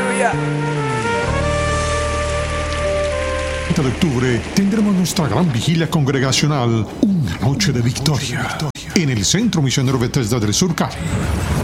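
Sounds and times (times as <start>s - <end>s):
speech: 0.2s - 0.7s, 3.8s - 11.6s
audience applause: 0.8s - 6.2s.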